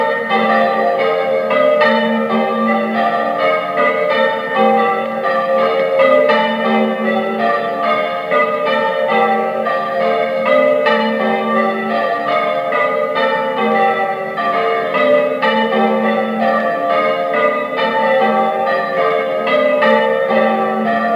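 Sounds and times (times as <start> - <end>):
bells ringing: 0.0 - 21.1.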